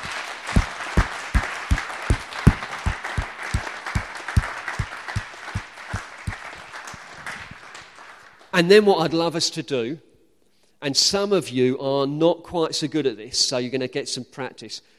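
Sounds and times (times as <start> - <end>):
audience applause: 0.0 - 8.5
speech: 8.6 - 10.1, 10.8 - 14.9.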